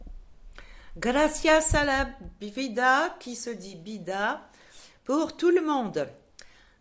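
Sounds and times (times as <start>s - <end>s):
voice: 1.0s - 4.4s, 5.1s - 6.2s.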